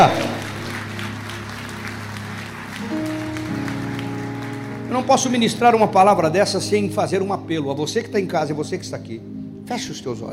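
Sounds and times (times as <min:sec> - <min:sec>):
speech: 0:00.0 - 0:00.4, 0:04.9 - 0:10.3
audience applauding loudly: 0:00.0 - 0:05.9
sustained keyboard chords: 0:00.0 - 0:10.3.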